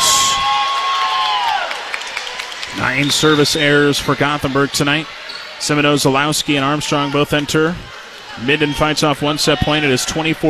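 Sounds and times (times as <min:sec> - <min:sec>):
volleyball fans clapping in an arena: 0:00.0 - 0:05.0
crowd noise in an arena: 0:00.0 - 0:10.4
speech: 0:02.9 - 0:10.4.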